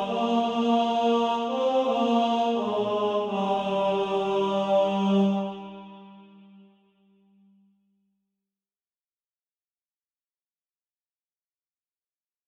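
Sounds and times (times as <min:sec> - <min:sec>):
tenor voice singing SATB practice music: 0:00.0 - 0:06.0.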